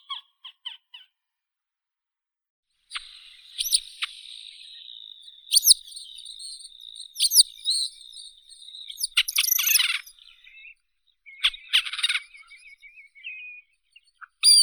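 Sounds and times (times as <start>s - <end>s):
Montagu's harrier Circus pygargus calling: 3.0s - 13.6s.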